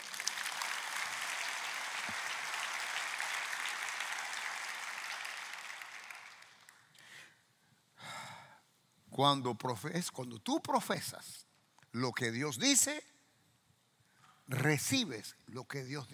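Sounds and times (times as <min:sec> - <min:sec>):
audience applause: 0:00.0 - 0:06.9
speech: 0:09.2 - 0:13.1, 0:14.5 - 0:16.1.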